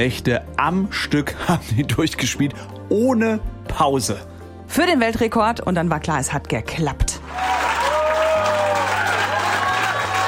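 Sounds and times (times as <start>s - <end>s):
speech: 0.0s - 7.2s
crowd cheering and applauding: 7.2s - 10.2s.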